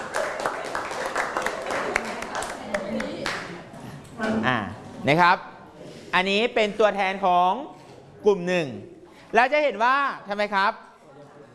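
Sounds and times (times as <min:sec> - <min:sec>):
classroom applause: 0:00.0 - 0:03.6
speech: 0:04.3 - 0:05.5, 0:06.2 - 0:10.8.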